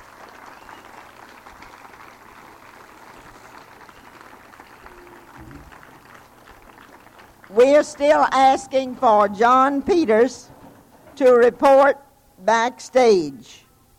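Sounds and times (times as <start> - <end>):
crowd applauding: 0.0 - 8.9
speech: 7.5 - 10.5, 11.2 - 13.6.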